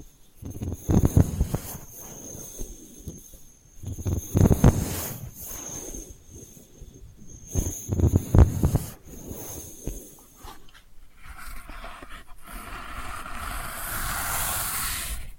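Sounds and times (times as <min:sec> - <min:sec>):
delicate scratching: 0:00.0 - 0:15.3.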